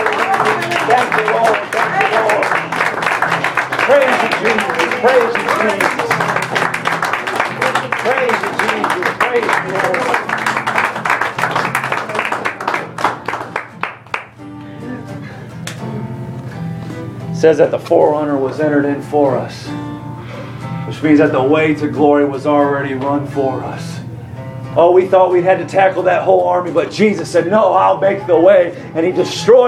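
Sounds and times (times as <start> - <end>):
audience hand clapping: 0.0 - 14.8
speech: 4.4 - 6.0, 17.4 - 19.7, 21.0 - 23.9, 24.8 - 29.6.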